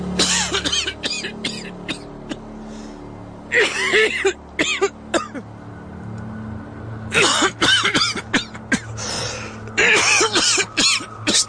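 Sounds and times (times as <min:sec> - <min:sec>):
man who smokes coughing in rough raspy bursts: 0:00.2 - 0:02.4, 0:03.5 - 0:05.5, 0:07.1 - 0:09.0, 0:09.8 - 0:11.4.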